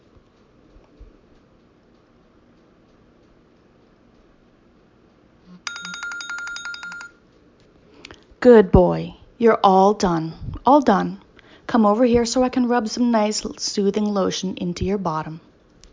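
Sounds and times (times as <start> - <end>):
timer alarm beeping: 5.7 - 7.2
speech: 8.4 - 15.5.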